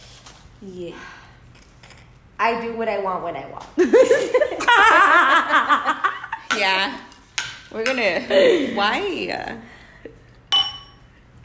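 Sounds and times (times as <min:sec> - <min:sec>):
speech: 0:00.6 - 0:01.2, 0:02.4 - 0:06.0, 0:06.6 - 0:07.0, 0:07.7 - 0:09.7
bright glass clink: 0:10.5 - 0:11.1.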